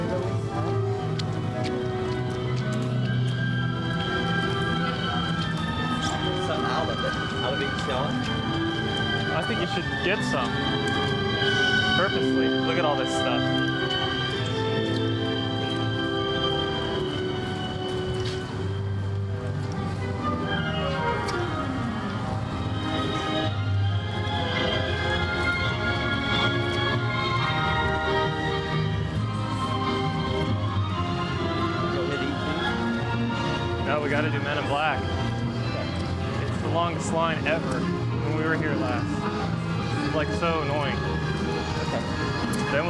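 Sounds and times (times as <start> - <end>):
clopping footsteps: 0.0 - 42.8
crowd chatter in a park: 0.0 - 42.8
music-like tones and sliding pitches: 0.0 - 42.8.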